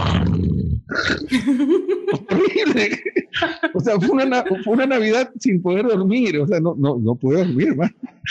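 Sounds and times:
voice imitating snoring: 0.0 - 1.3
laughter: 1.3 - 6.7, 7.3 - 8.2
speech: 1.3 - 8.2.

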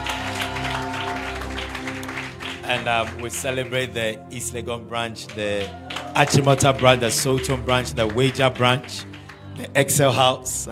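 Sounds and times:
crowd applauding: 0.0 - 10.7
speech: 2.7 - 10.7.

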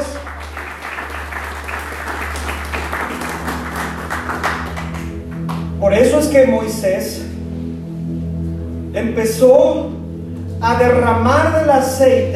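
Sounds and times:
audience applause: 0.0 - 5.8
speech: 5.9 - 7.2, 9.0 - 9.9, 10.6 - 12.3.

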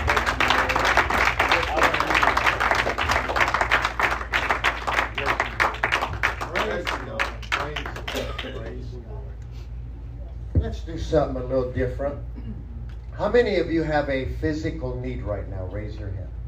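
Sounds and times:
audience hand clapping: 0.0 - 8.9
speech: 11.1 - 12.3, 13.2 - 16.4.

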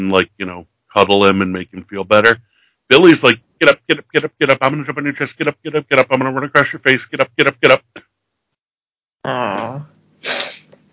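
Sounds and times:
speech: 0.0 - 8.0, 9.2 - 9.9
sniffling: 10.2 - 10.8.

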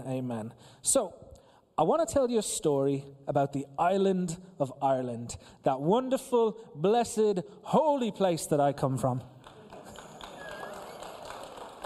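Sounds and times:
speech: 0.1 - 9.4
audience clapping: 9.4 - 11.8.

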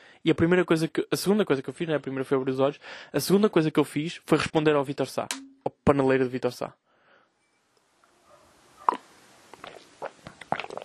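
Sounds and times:
speech: 0.2 - 6.9
softer wet clicks and swallowing sounds: 8.9 - 10.8
someone drinking with gulping swallow: 8.9 - 10.8.

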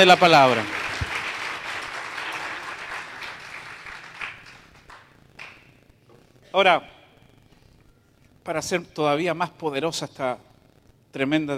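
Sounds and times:
speech: 0.0 - 0.8, 6.6 - 6.9, 8.5 - 10.5, 11.1 - 11.5
audience applause: 0.0 - 5.6.

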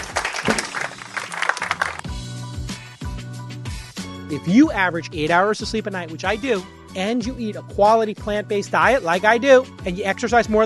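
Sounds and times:
audience applause: 0.0 - 2.1
speech: 4.3 - 10.6.

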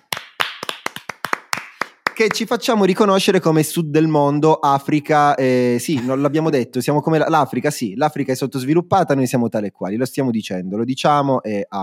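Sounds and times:
hand clapping: 0.0 - 2.6
speech: 2.2 - 11.8.

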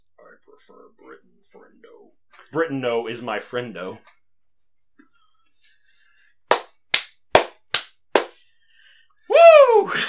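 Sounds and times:
speech: 0.6 - 4.2
person clapping: 6.4 - 8.4.

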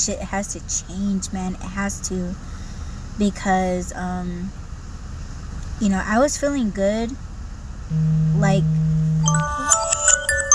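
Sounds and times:
speech: 0.0 - 2.6, 3.2 - 4.6, 5.8 - 7.3, 7.9 - 9.8
alarm: 7.9 - 10.5.

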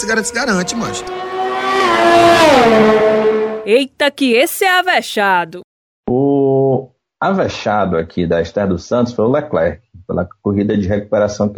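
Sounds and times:
racing-car jingle for a Styrian Grand Prix segment: 0.0 - 3.8
speech: 0.0 - 6.2, 6.8 - 11.5.

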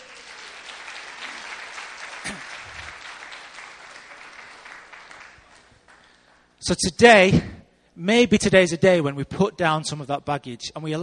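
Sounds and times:
audience applause: 0.0 - 6.4
speech: 6.6 - 11.0.

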